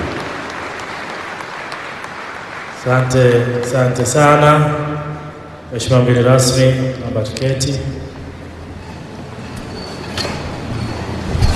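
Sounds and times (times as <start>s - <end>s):
crowd clapping at a formal ceremony: 0.0s - 5.7s
speech: 2.8s - 5.0s, 5.7s - 8.1s.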